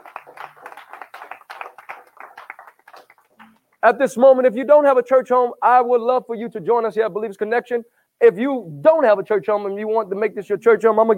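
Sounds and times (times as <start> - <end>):
audience clapping: 0.0 - 3.8
speech: 3.8 - 11.1.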